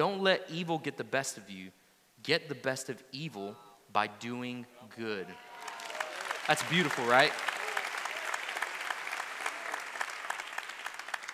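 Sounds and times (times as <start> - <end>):
speech: 0.0 - 5.5, 6.5 - 7.5
audience clapping: 5.4 - 11.3.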